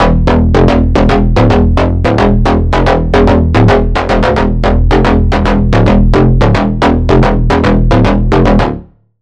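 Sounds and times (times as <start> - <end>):
bass: 0.0 - 9.2.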